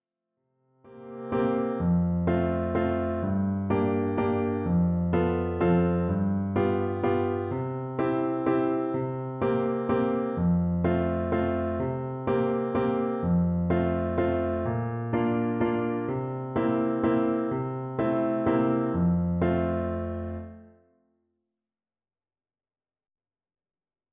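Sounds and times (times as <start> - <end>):
waltz music: 1.6 - 20.6.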